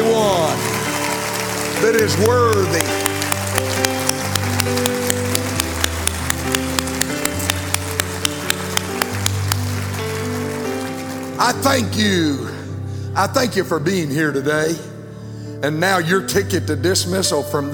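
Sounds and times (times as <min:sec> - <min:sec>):
audience clapping hands: 0:00.0 - 0:12.2
sustained organ-like chords: 0:00.0 - 0:15.8
speech: 0:01.9 - 0:03.1, 0:11.5 - 0:12.5, 0:13.2 - 0:14.9, 0:15.6 - 0:17.7.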